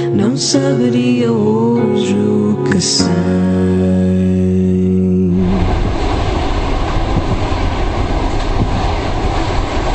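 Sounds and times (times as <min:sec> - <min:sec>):
speech: 0:00.2 - 0:04.9
train running on rails: 0:05.3 - 0:09.9
train wheels clattering: 0:05.7 - 0:09.9.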